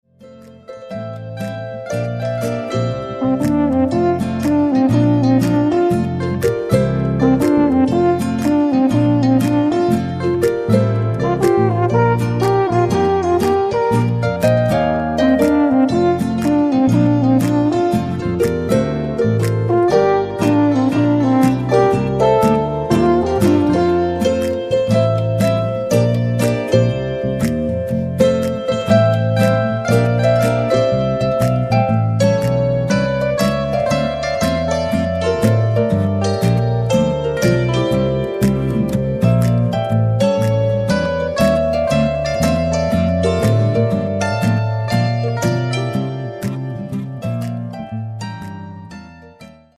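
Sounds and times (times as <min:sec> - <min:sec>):
swinging alphorn playing: 0:00.4 - 0:49.7.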